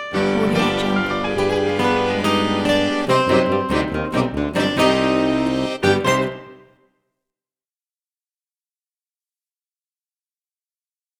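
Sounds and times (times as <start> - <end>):
festive dance music: 0.2 - 6.6.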